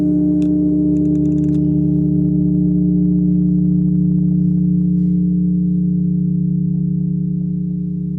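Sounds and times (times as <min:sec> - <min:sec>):
15-tonne Credamus bell of Magdeburg Cathedral ringing: 0:00.0 - 0:08.1.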